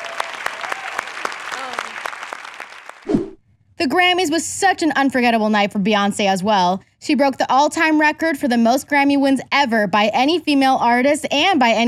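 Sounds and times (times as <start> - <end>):
cheers and whoops: 0.0 - 2.5
audience applause: 0.0 - 3.1
speech: 3.8 - 11.8.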